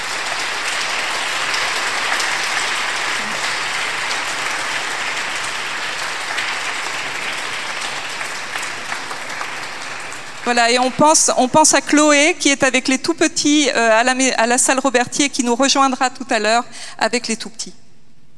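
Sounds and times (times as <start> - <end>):
audience applause: 0.0 - 11.4
speech: 10.5 - 17.8.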